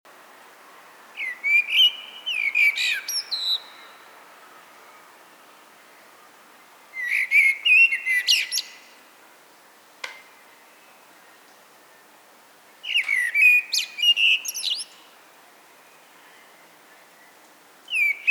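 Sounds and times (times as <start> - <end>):
Eurasian blackbird fluting song: 1.2 - 4.0, 7.0 - 8.9, 12.8 - 15.0, 17.2 - 18.2.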